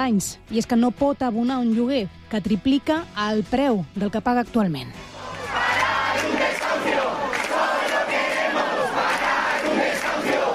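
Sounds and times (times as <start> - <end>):
speech: 0.0 - 5.1
crowd of protesters at eviction: 5.0 - 10.5.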